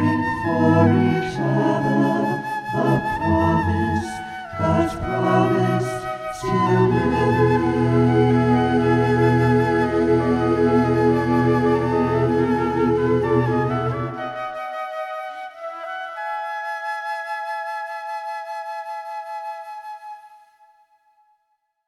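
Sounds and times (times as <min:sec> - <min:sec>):
SATB choir singing: 0:00.0 - 0:14.5
two flutes playing: 0:00.0 - 0:21.0.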